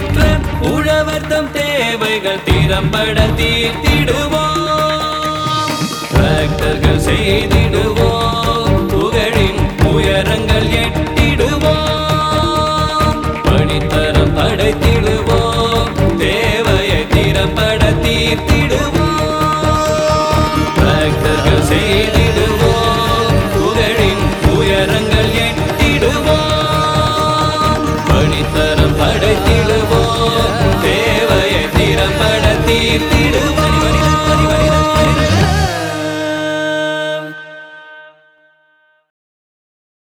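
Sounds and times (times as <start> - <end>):
anthem music: 0.0 - 38.0.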